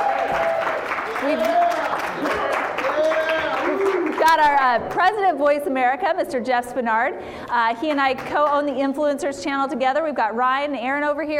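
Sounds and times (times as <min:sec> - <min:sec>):
crowd applauding: 0:00.0 - 0:05.1
speech: 0:01.2 - 0:01.6, 0:04.3 - 0:11.3.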